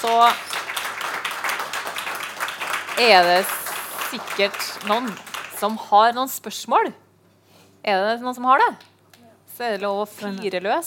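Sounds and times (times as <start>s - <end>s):
speech: 0.0s - 0.5s, 3.0s - 7.0s, 7.8s - 8.9s, 9.6s - 10.8s
audience applause: 0.0s - 5.8s.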